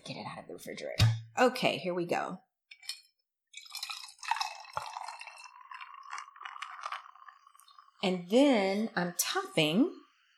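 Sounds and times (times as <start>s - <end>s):
speech: 0.6s - 2.5s, 8.0s - 10.0s
pouring limoncello and sparkling white wine: 3.5s - 10.3s.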